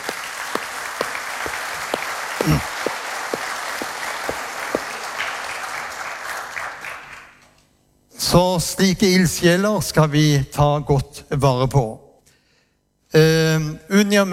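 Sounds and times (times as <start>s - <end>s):
audience applause: 0.0s - 7.3s
speech: 8.3s - 12.0s, 14.1s - 14.3s.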